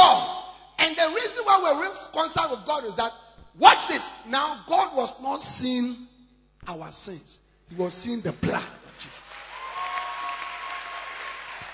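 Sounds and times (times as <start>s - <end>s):
speech: 1.4s - 9.5s
audience clapping hands: 8.4s - 11.7s.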